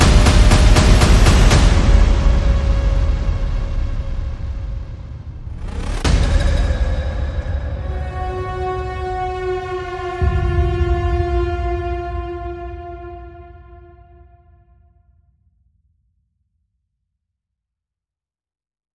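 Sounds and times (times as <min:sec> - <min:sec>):
tribal music: 0:00.0 - 0:14.6.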